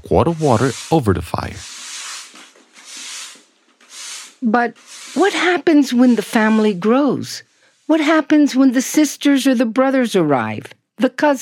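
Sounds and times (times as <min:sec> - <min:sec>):
speech: 0:00.0 - 0:01.8, 0:04.4 - 0:11.4
broom sweeping a floor: 0:00.3 - 0:08.2.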